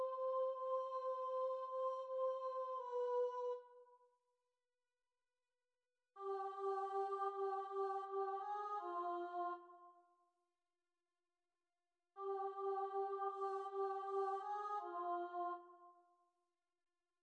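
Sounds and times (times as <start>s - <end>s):
alto choir singing: 0.0s - 3.6s, 6.2s - 9.6s, 12.2s - 15.6s.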